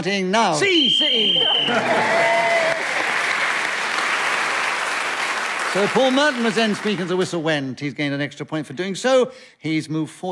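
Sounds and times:
speech: 0.0s - 2.4s, 5.7s - 10.3s
audience applause: 1.4s - 7.3s.

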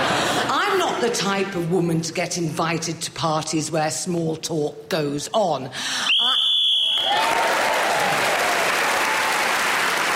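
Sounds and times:
speech: 1.0s - 6.2s
shrill whistle blast: 6.1s - 7.3s
loud applause: 6.1s - 10.1s.

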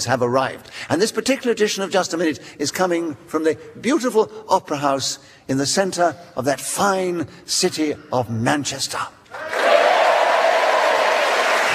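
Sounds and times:
speech: 0.0s - 9.6s
theatre audience applause: 9.4s - 11.7s
theatre audience at the Opera House in Manchester cheering: 9.4s - 11.7s.

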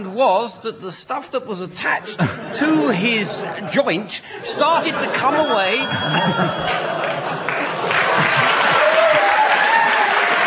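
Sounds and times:
speech: 0.0s - 7.4s
laughter: 1.8s - 9.6s
studio audience applause at a comedy panel game: 6.6s - 10.4s.

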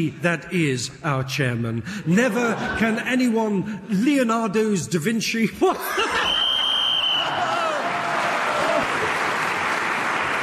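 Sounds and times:
speech: 0.0s - 6.4s
laughter: 2.1s - 3.4s, 5.6s - 6.6s
studio audience cheering: 6.0s - 10.4s.

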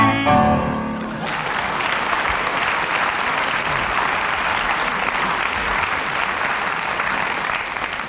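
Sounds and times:
person singing: 0.0s - 0.9s
audience applause: 0.8s - 8.0s.

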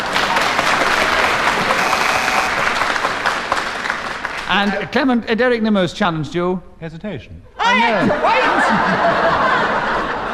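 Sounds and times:
laughter: 0.0s - 2.9s, 7.6s - 10.3s
studio audience clapping at a panel game show: 0.0s - 5.2s
speech: 4.5s - 9.9s.

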